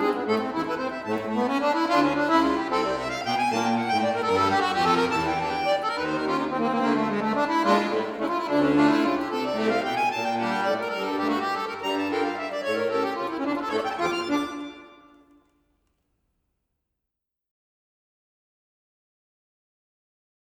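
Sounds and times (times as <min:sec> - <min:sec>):
accordion: 0:00.0 - 0:15.4.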